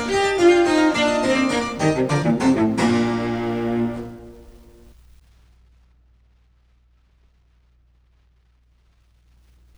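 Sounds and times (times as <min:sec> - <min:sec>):
cello sonata: 0:00.0 - 0:04.9.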